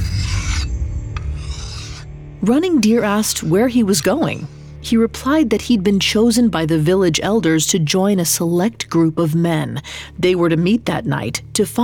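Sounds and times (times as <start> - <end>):
dagger being sharpened: 0.0 - 2.1
low rumble: 0.0 - 7.5
speech: 2.4 - 11.8.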